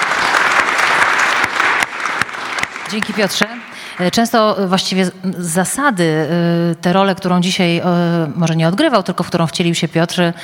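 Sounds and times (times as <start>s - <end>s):
audience applause: 0.0s - 4.2s
speech: 2.9s - 10.4s.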